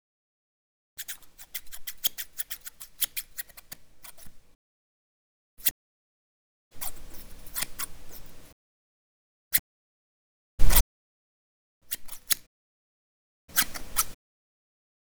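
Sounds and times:
scissors: 1.0s - 4.5s, 6.8s - 8.5s, 11.9s - 12.4s, 13.5s - 14.1s.

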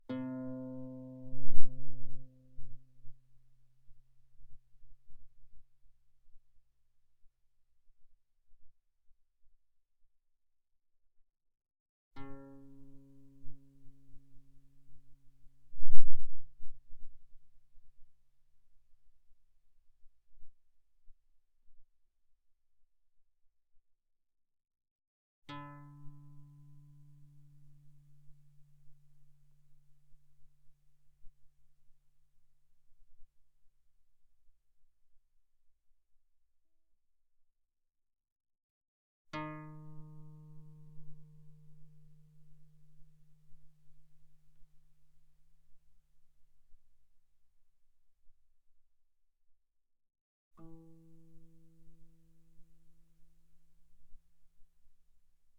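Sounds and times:
pianissimo guitar notes on the A string: 0.0s - 4.2s, 12.2s - 15.7s, 25.5s - 30.7s, 39.3s - 45.4s, 50.6s - 54.2s.

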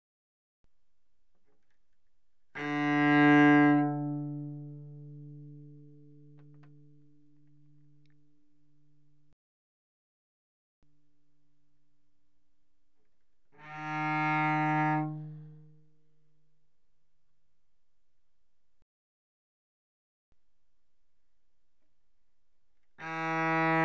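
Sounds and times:
cello arco notes on the D string: 1.5s - 9.2s, 13.4s - 16.5s, 22.8s - 23.8s.

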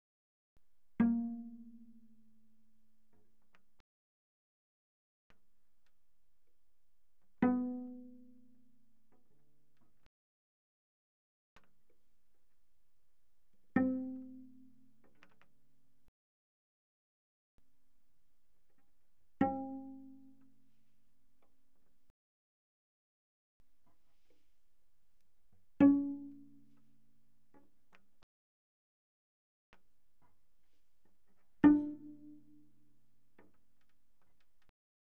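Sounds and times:
cello pizzicato mezzo-forte on the G string: 0.9s - 3.4s, 7.3s - 9.6s, 13.6s - 15.4s, 18.6s - 21.8s, 23.7s - 28.1s, 30.2s - 34.7s.

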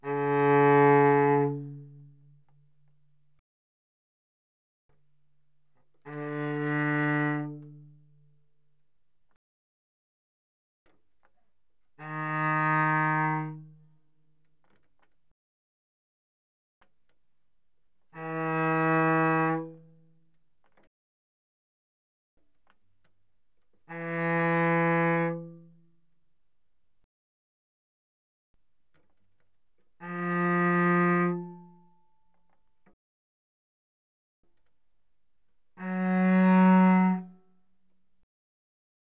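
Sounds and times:
cello played arco mezzo forte on the C string: 0.0s - 2.9s, 6.0s - 8.2s, 11.9s - 13.9s, 18.1s - 20.0s, 23.9s - 25.9s, 30.0s - 32.0s, 35.7s - 37.5s.

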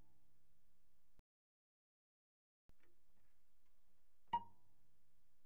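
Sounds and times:
cello pizzicato pianissimo on A string Ab5 and Bb5: 3.3s - 4.9s.

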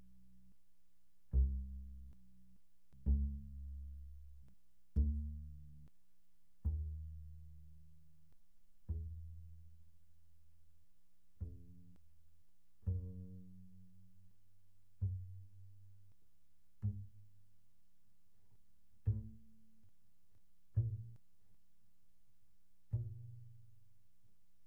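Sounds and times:
very soft double bass pizzicato on the E string: 0.0s - 0.5s, 1.3s - 5.9s, 6.6s - 17.8s, 18.8s - 20.0s, 20.7s - 21.5s, 22.8s - 24.2s.

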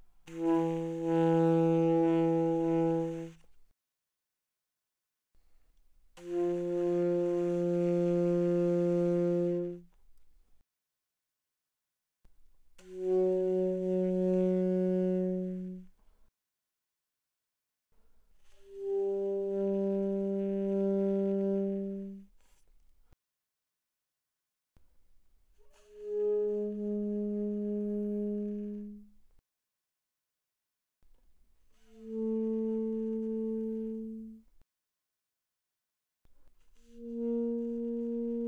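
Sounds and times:
alto saxophone notes played softly without vibrato: 0.3s - 3.4s, 6.2s - 9.9s, 12.8s - 15.9s, 18.7s - 22.2s, 25.9s - 29.1s, 31.9s - 34.4s, 37.0s - 38.4s.

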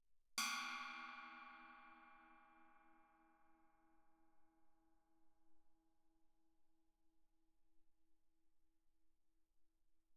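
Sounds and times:
suspended cymbals struck with Chinese stick: 0.4s - 3.6s.

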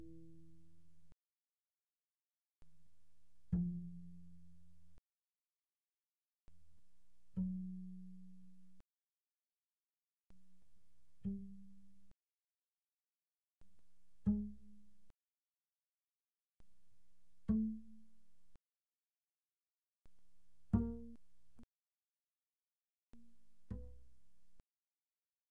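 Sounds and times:
double bass pizzicato pianissimo on the D string C3 to B3: 0.0s - 1.1s, 3.5s - 5.0s, 7.3s - 8.8s, 14.2s - 14.9s, 17.4s - 18.1s, 20.6s - 21.2s, 23.6s - 24.2s.

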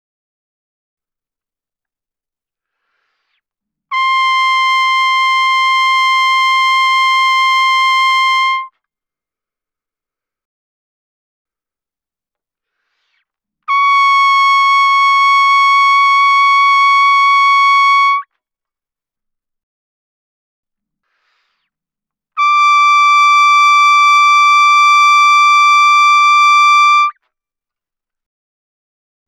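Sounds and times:
trumpet vibrato fortissimo C6 D6: 3.9s - 8.7s, 13.7s - 18.2s, 22.4s - 27.1s.

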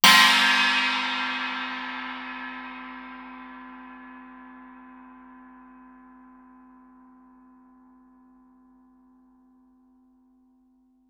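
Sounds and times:
suspended cymbal struck with Chinese stick fortissimo: 0.0s - 6.2s.

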